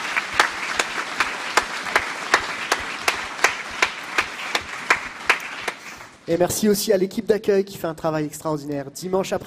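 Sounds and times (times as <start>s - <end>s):
audience applause: 0.0s - 6.3s
rhythmic claps in time: 0.0s - 6.3s
speech: 6.3s - 9.4s.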